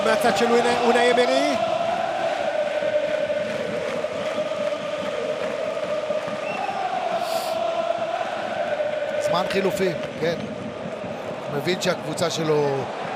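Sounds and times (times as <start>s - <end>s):
speech: 0.0s - 1.7s, 9.4s - 10.6s, 11.5s - 13.0s
stadium crowd cheering: 0.0s - 13.1s.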